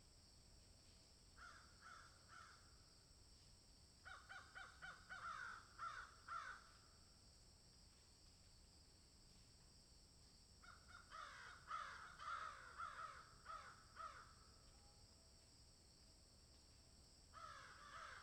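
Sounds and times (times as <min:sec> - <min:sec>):
several crows cawing in a field: 0:01.4 - 0:02.6, 0:04.0 - 0:06.8, 0:10.6 - 0:14.4, 0:17.3 - 0:18.2.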